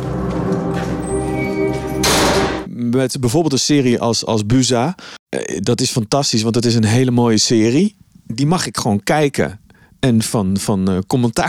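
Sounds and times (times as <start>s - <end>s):
cell door closing: 0.0s - 2.7s
speech: 2.8s - 11.4s.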